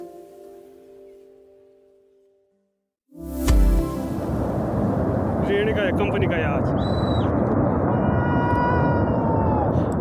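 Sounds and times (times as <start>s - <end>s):
glacier collapsing into a valley, roaring rumble: 4.3s - 9.9s
speech: 5.7s - 7.7s
whistling and squealing tones: 6.8s - 7.4s.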